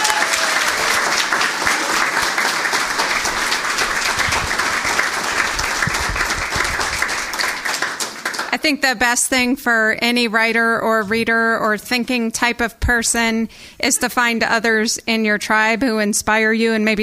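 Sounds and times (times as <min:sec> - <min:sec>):
audience applause: 0:00.0 - 0:08.6
speech: 0:08.6 - 0:17.0.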